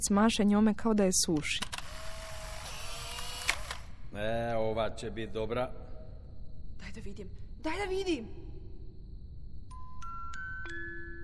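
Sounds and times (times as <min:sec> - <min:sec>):
speech: 0:00.0 - 0:01.7, 0:04.2 - 0:05.9, 0:06.8 - 0:08.5
instant camera motor whir ejecting a photograph: 0:01.6 - 0:04.0
instant camera mechanical clicks: 0:02.6 - 0:03.9.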